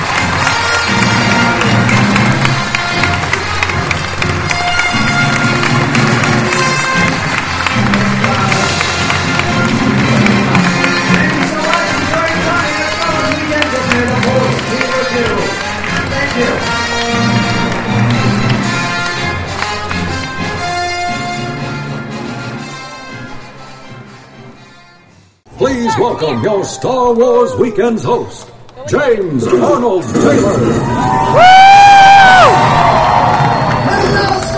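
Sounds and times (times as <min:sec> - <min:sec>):
crowd cheering at a Star Wars Weekend event: 0:00.0 - 0:18.2, 0:30.3 - 0:34.5
crowd applauding at a Star Wars Weekend event: 0:00.0 - 0:21.6, 0:30.8 - 0:34.5
speech: 0:26.2 - 0:31.6.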